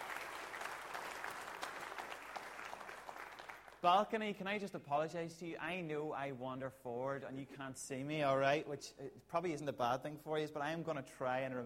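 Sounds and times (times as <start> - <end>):
sustained applause from a large audience: 0.0 - 3.8
speech: 3.8 - 11.6.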